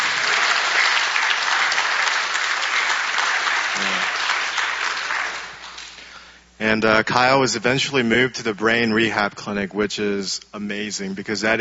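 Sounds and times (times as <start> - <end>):
audience applause: 0.0 - 6.1
speech: 6.6 - 11.5.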